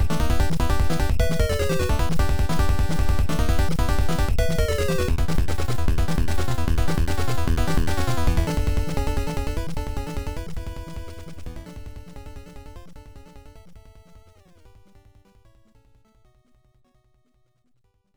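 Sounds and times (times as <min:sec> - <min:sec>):
boss battle background music: 0:00.0 - 0:11.6.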